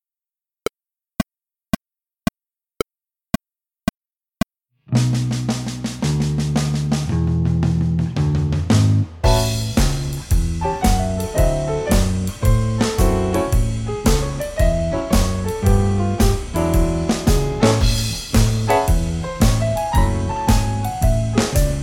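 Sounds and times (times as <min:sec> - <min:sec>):
drums: 0:04.9 - 0:21.8.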